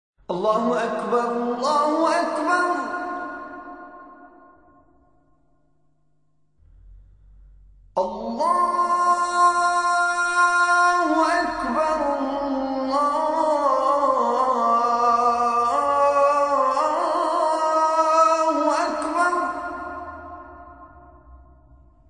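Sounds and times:
azan call to prayer: 0.3 - 4.7, 8.0 - 21.2.

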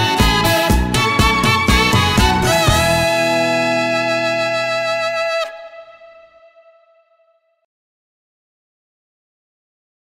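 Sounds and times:
violin: 0.0 - 6.8
saxophone: 0.0 - 7.5.

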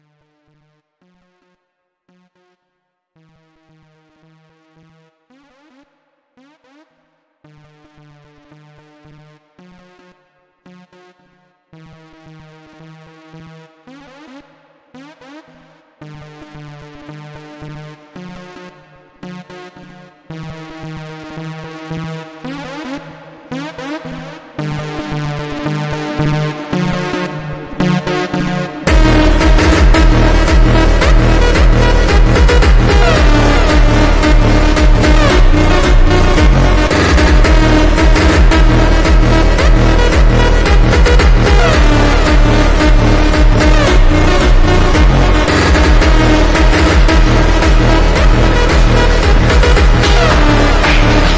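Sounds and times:
song super slowed with reverb: 22.2 - 51.3.

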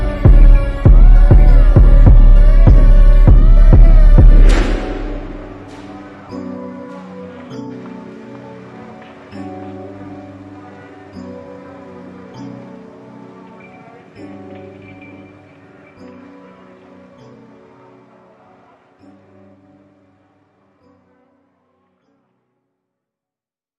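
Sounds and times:
slowed reverb music: 0.0 - 14.4.

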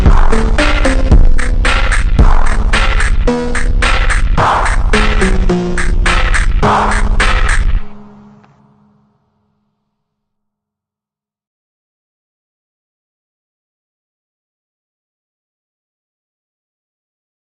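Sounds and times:
slowed phonk music with reverb: 0.0 - 9.0.

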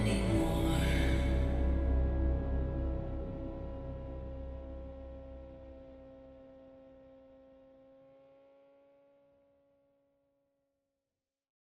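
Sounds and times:
slowed music with reverb: 0.0 - 9.0.

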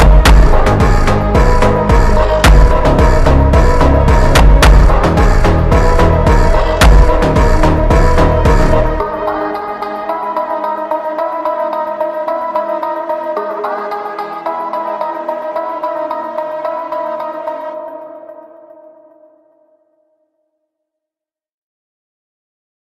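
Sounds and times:
slowed funk music: 0.0 - 18.3.

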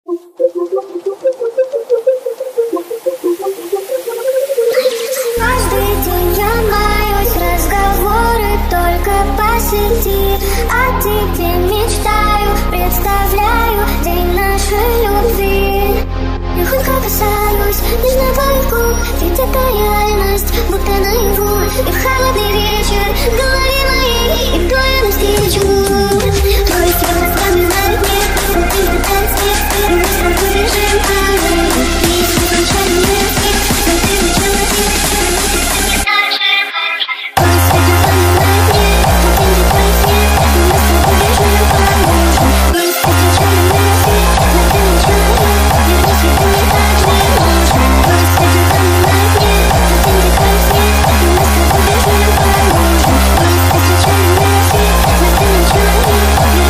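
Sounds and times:
hardstyle music: 0.1 - 36.4, 37.4 - 56.6.

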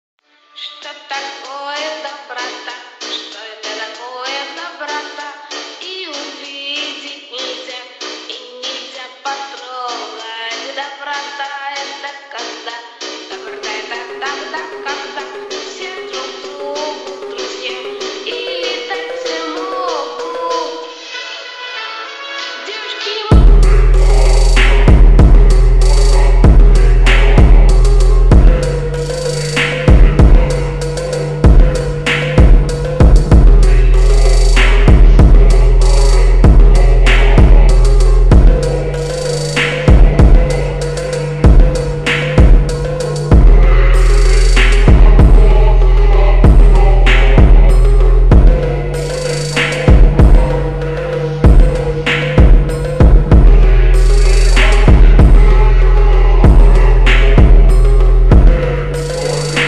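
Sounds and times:
slowed phonk remix with reverb: 0.8 - 21.7, 23.3 - 59.6.

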